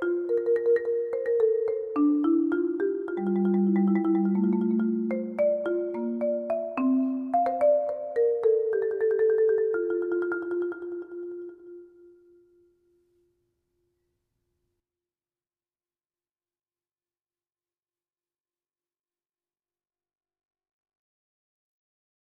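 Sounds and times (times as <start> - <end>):
keyboard: 0.0 - 12.4.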